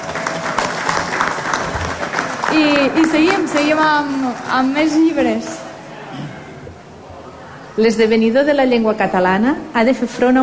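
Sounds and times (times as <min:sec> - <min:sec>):
audience applause at a book presentation: 0:00.0 - 0:05.9
speech: 0:02.5 - 0:05.6, 0:07.8 - 0:10.4.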